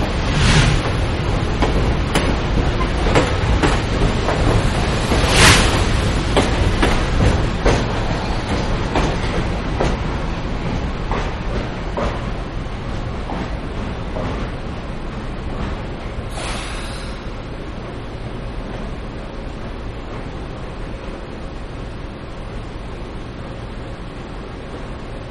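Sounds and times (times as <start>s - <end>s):
diesel commuter train departing: 0.0s - 25.2s.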